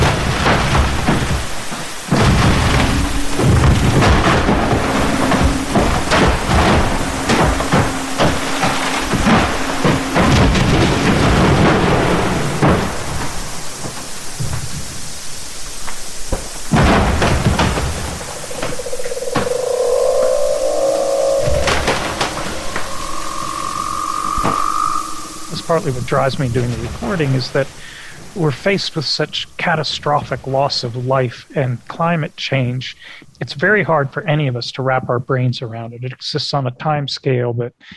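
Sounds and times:
ice booming, thudding and cracking: 0.0s - 15.1s, 15.9s - 18.6s
eerie high whining tones: 1.0s - 27.6s
speech: 25.8s - 37.9s.

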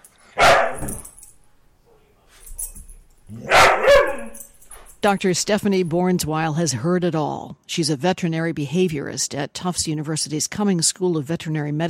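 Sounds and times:
lab hound mix dog barking for attention: 0.4s - 1.1s, 3.3s - 4.5s
speech: 5.0s - 11.8s.

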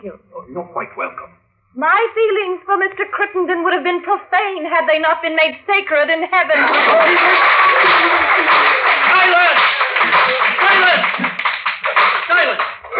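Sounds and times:
speech: 0.0s - 8.2s
courtroom spectators applauding: 6.6s - 12.9s
scattered laughter: 6.7s - 11.4s.

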